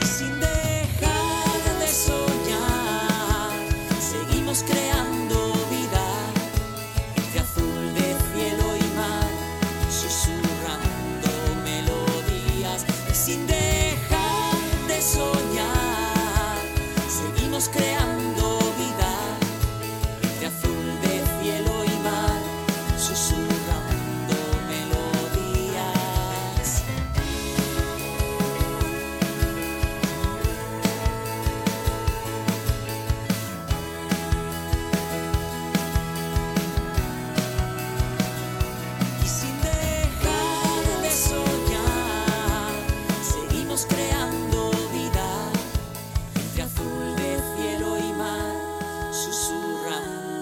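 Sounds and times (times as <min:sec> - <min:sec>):
hymn ringtone: 0:00.1 - 0:50.3.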